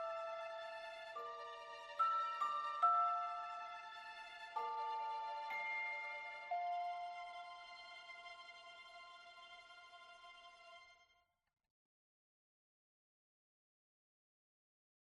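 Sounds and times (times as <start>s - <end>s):
orchestral arrangement: 0.0s - 10.9s.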